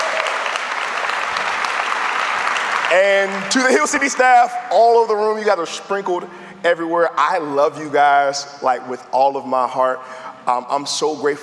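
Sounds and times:
audience clapping hands: 0:00.0 - 0:04.5
speech: 0:02.9 - 0:11.4.

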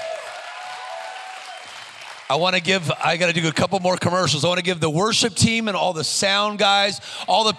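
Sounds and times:
audience clapping: 0:00.0 - 0:04.6
speech: 0:02.3 - 0:07.5.

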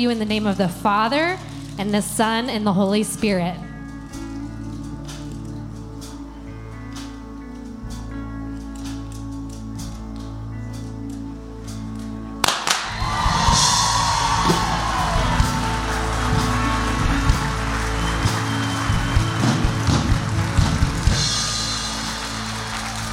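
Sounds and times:
speech: 0:00.0 - 0:03.7
audience cheering after baptism: 0:12.6 - 0:23.1.

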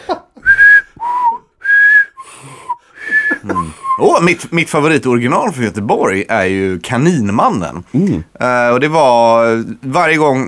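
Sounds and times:
person whistling an imitation of two-note flute playing: 0:00.4 - 0:04.0
laughter: 0:03.1 - 0:04.4
speech: 0:04.0 - 0:10.4.

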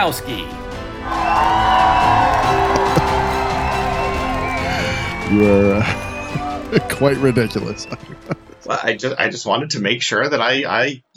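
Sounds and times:
speech: 0:00.0 - 0:01.8, 0:05.3 - 0:06.0, 0:06.7 - 0:11.1
applause: 0:01.0 - 0:08.0
crowd cheering and whooping: 0:01.0 - 0:08.2
laughter: 0:01.1 - 0:09.0.

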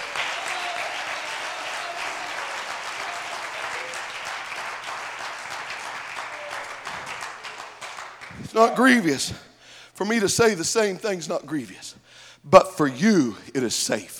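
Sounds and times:
audience clapping hands: 0:00.0 - 0:09.0
speech: 0:08.6 - 0:14.1.

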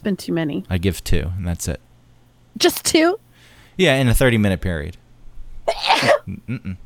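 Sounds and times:
speech: 0:00.0 - 0:01.9, 0:02.6 - 0:03.2, 0:03.8 - 0:05.0, 0:05.6 - 0:06.8
loud sneeze: 0:05.7 - 0:06.3.

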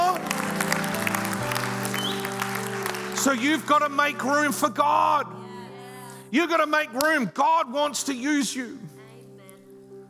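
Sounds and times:
hands clapping: 0:00.0 - 0:03.7
speech: 0:03.2 - 0:05.4, 0:06.3 - 0:08.9.

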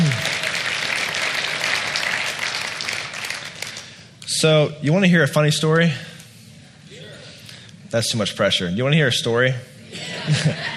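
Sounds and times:
applause: 0:00.0 - 0:04.1
speech: 0:04.4 - 0:06.1, 0:07.9 - 0:09.7, 0:10.3 - 0:10.7
laughter: 0:09.9 - 0:10.7.

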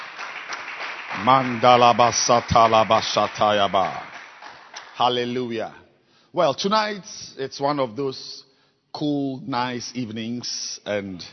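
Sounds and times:
audience clapping: 0:00.0 - 0:05.6
speech: 0:01.2 - 0:04.1, 0:05.0 - 0:08.4, 0:09.0 - 0:11.3.

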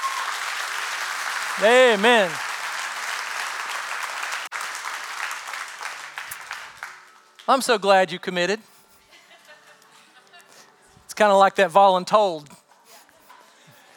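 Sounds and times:
audience clapping: 0:00.0 - 0:07.8
speech: 0:01.6 - 0:02.4, 0:07.5 - 0:08.7, 0:11.2 - 0:12.6.

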